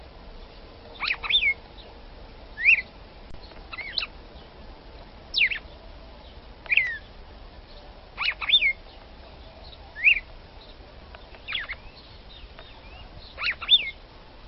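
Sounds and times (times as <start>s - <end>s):
red-cowled cardinal female singing short sweeping whistles: 1.0s - 1.6s, 2.6s - 2.9s, 3.7s - 4.1s, 5.3s - 5.6s, 6.7s - 7.1s, 8.2s - 8.8s, 10.0s - 10.3s, 11.4s - 14.0s.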